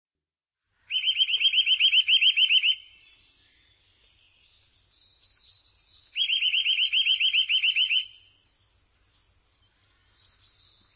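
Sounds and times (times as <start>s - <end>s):
bird giving rapid trilled notes: 0.9s - 3.0s, 6.1s - 8.5s.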